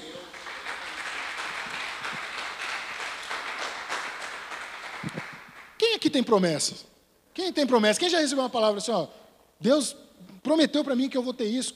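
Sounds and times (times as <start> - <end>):
applause: 0.0 - 5.8
speech: 6.0 - 11.7.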